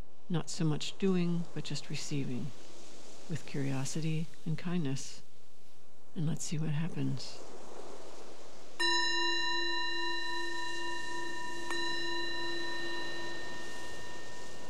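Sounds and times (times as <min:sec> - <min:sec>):
speech: 0:00.3 - 0:02.7, 0:03.3 - 0:05.2, 0:06.2 - 0:07.5
meditation bell ringing: 0:08.8 - 0:14.6.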